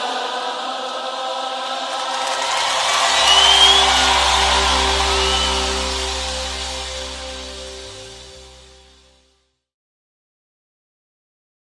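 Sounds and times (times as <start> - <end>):
hymn chorus: 0.0 - 8.5.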